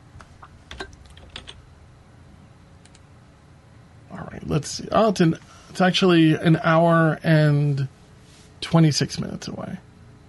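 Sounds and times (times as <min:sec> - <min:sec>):
typing an address on a computer keyboard: 0:00.7 - 0:01.6
speech: 0:04.5 - 0:08.0, 0:08.6 - 0:09.9.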